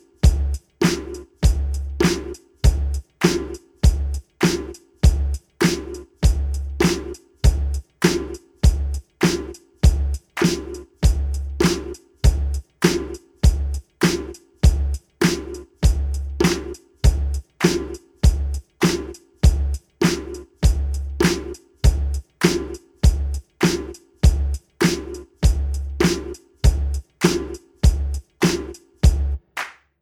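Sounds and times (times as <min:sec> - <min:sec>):
drums: 0:00.0 - 0:29.4.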